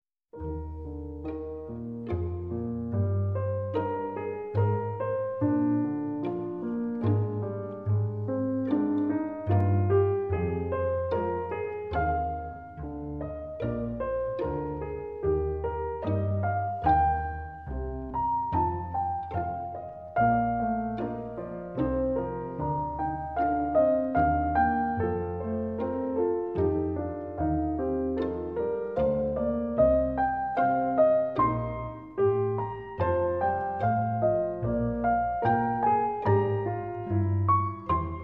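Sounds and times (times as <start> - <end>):
concerto for two pianos: 0.3 - 38.2.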